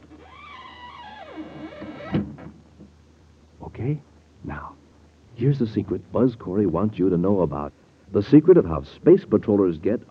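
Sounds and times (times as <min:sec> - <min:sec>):
door closing: 0:00.0 - 0:02.6
speech: 0:03.8 - 0:04.1, 0:05.4 - 0:10.0.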